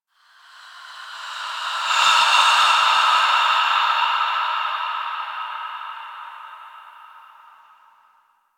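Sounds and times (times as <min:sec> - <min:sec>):
breathing: 0:00.0 - 0:08.3.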